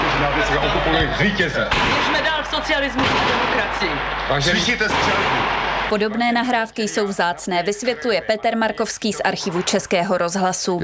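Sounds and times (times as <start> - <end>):
speech: 0.3 - 10.8
gunfire in archival street recording: 1.7 - 6.1.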